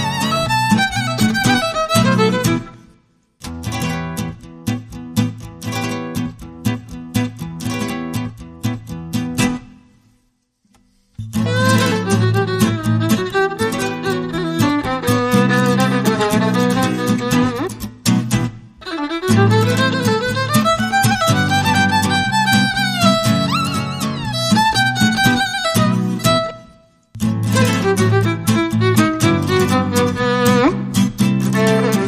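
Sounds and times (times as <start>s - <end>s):
violin: 0.0s - 3.0s, 11.3s - 32.0s
guitars: 0.0s - 32.0s.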